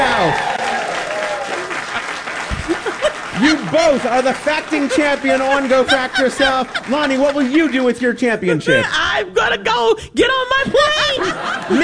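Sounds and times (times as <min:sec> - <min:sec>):
studio audience applause at a comedy trivia game show: 0:00.0 - 0:08.3
laughter: 0:00.0 - 0:09.3, 0:10.6 - 0:11.8
speech: 0:03.7 - 0:11.8.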